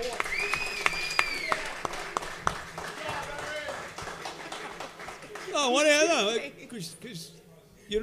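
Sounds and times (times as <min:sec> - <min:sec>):
audience applause: 0:00.0 - 0:06.4
speech: 0:05.6 - 0:08.0.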